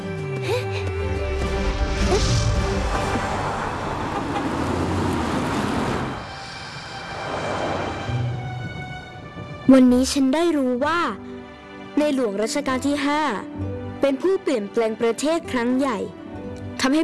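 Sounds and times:
car engine roaring while approaching: 1.0s - 9.5s
speech: 9.7s - 11.3s, 12.0s - 16.2s, 16.8s - 17.0s.

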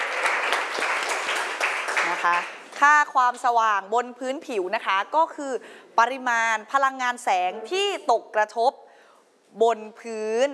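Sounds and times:
loud crowd applause for a student group: 0.0s - 2.6s
speech: 2.2s - 8.8s, 9.5s - 10.5s.

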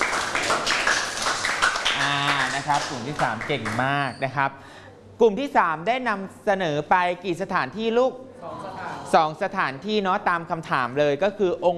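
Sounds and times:
group applauding: 0.0s - 4.0s
speech: 2.7s - 11.7s.

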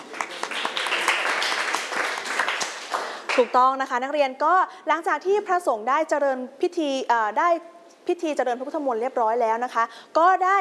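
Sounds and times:
classmates clapping: 0.0s - 3.5s
speech: 3.4s - 10.6s.

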